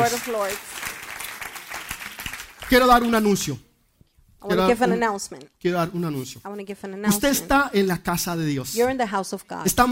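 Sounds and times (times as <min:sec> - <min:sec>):
speech: 0:00.0 - 0:00.8, 0:02.7 - 0:03.7, 0:04.4 - 0:09.9
audience applauding: 0:00.0 - 0:03.4.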